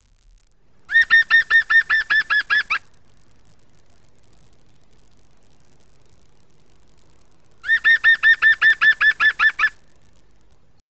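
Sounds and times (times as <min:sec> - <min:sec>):
birds: 0:00.9 - 0:02.8, 0:07.6 - 0:10.8.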